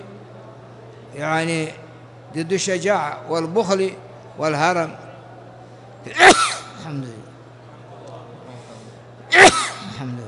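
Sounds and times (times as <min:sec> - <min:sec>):
speech: 0:01.1 - 0:05.0, 0:06.0 - 0:07.3
person sneezing during a religious lecture: 0:06.1 - 0:06.8, 0:09.3 - 0:10.0.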